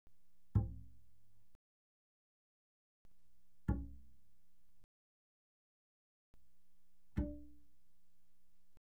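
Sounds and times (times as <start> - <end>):
double bass pizzicato mezzo forte on the D string: 0.4 - 1.1, 3.6 - 4.2, 7.0 - 7.7.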